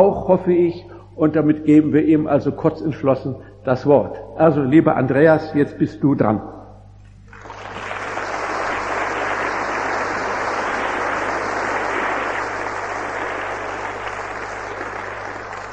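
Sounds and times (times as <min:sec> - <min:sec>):
speech: 0:00.0 - 0:06.6
audience applause: 0:07.3 - 0:15.7.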